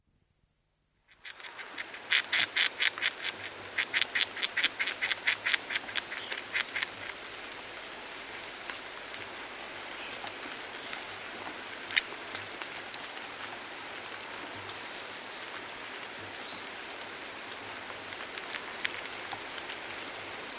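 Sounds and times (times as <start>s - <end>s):
background hiss: 0.0s - 20.5s
Arizona gray squirrel clicking chucks: 1.1s - 7.2s, 18.3s - 19.4s.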